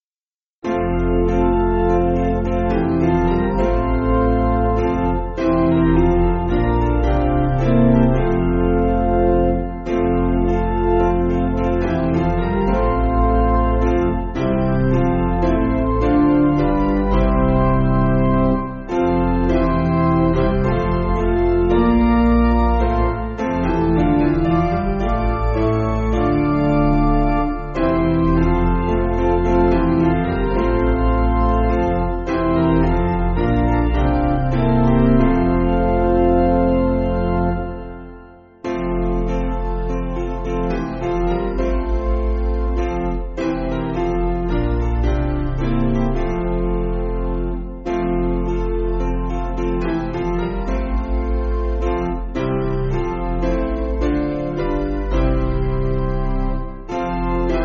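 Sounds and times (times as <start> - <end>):
piano backing music for churches: 0.6 - 57.6.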